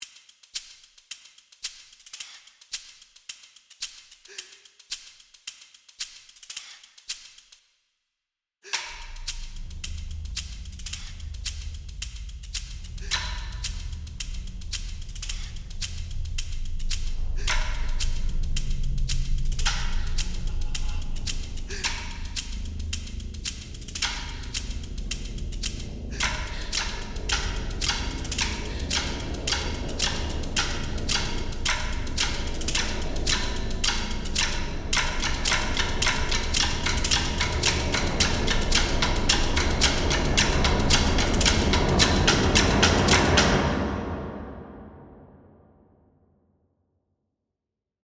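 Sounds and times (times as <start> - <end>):
horror music: 8.9 - 45.4.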